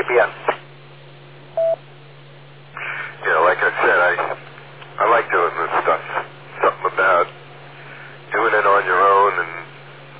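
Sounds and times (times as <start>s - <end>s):
low electrical hum: 0.0s - 10.1s
speech: 0.1s - 0.5s
telephone tone beep: 1.6s - 1.8s.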